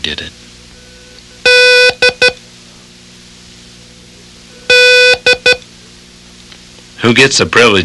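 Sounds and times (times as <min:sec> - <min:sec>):
speech: 0:00.0 - 0:00.4, 0:07.0 - 0:07.8
code signal beeps: 0:01.4 - 0:02.4, 0:04.7 - 0:05.6.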